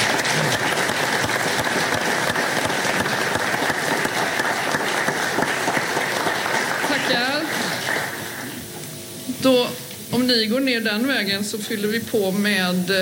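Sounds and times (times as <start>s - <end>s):
audience applause at a Swedish political gathering: 0.0s - 8.7s
speech: 10.3s - 13.0s.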